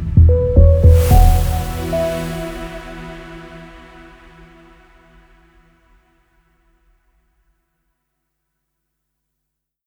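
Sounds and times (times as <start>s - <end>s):
news compact main ident jingle with bumper and bed in E major: 0.3s - 3.7s.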